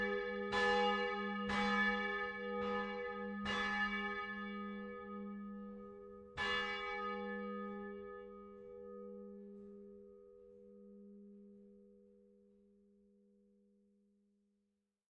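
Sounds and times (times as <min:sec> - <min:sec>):
fourth church bell of St. Paul in Fürth ringing: 0:00.0 - 0:11.2.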